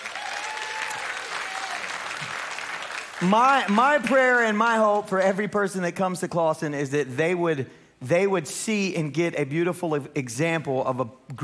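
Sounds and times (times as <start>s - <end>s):
church audience applause greeting a guest at a morning service: 0.0s - 4.0s
speech: 3.2s - 11.4s.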